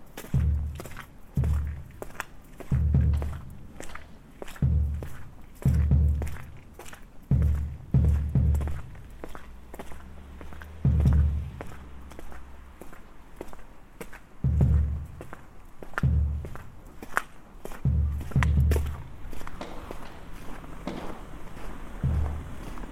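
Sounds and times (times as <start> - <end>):
footsteps crunching through snow: 0.0 - 22.9.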